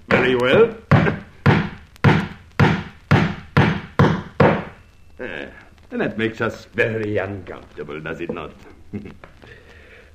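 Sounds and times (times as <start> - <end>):
amateur carpenter hammering nails into wood: 0.1 - 4.8
speech: 0.2 - 1.2, 5.2 - 9.6.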